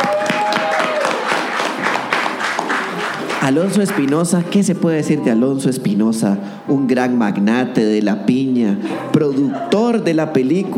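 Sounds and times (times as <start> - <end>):
crowd applauding: 0.0 - 4.7
speech: 3.4 - 10.7
laughter: 8.7 - 10.6.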